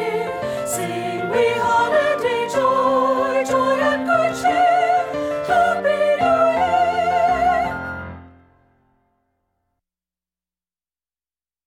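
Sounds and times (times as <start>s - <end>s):
soprano singing: 0.0s - 8.2s.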